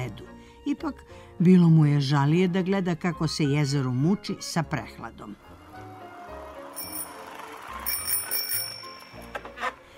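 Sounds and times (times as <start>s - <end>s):
speech: 0.7s - 5.5s
bicycle bell ringing: 6.6s - 9.7s.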